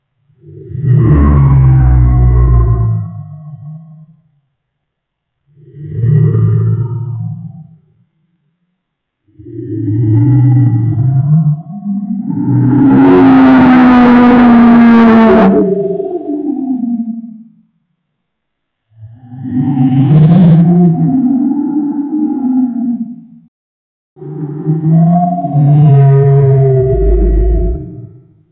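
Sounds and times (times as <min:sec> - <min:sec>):
Godzilla kaiju dinosaur roar: 0:00.4 - 0:03.7, 0:09.4 - 0:16.9, 0:19.0 - 0:23.0, 0:24.2 - 0:28.2.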